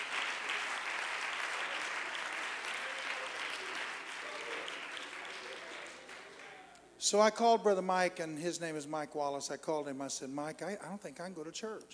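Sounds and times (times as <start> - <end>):
audience clapping hands: 0.0 - 6.7
speech: 7.0 - 11.9.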